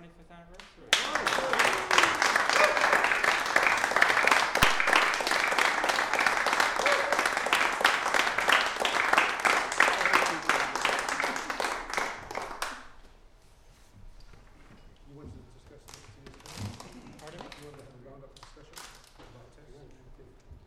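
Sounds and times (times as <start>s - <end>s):
crowd round of applause: 0.9s - 13.0s.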